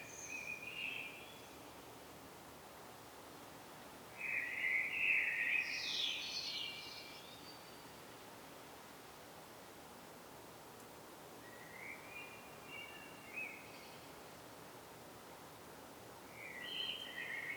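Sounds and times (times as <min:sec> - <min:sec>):
common blackbird song: 0:00.0 - 0:01.6, 0:04.2 - 0:08.0, 0:11.4 - 0:14.1, 0:16.3 - 0:17.5
hiss: 0:00.0 - 0:17.5.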